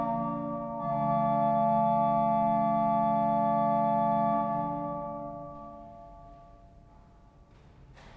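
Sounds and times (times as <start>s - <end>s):
organ invention: 0.0s - 6.2s.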